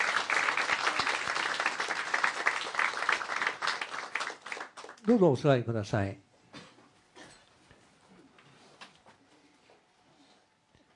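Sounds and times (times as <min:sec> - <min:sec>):
audience applause: 0:00.0 - 0:05.2
speech: 0:05.0 - 0:06.2.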